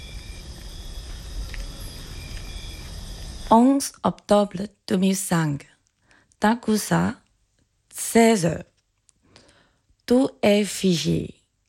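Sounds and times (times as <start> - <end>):
cane toads calling: 0.0 - 3.6
crickets chirping: 0.0 - 4.0
speech: 3.5 - 5.7, 6.4 - 7.2, 8.0 - 8.7, 10.1 - 11.4.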